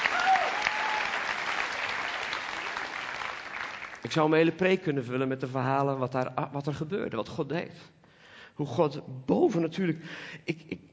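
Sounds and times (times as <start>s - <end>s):
audience applause: 0.0s - 4.1s
speech: 4.0s - 8.0s, 8.6s - 10.9s.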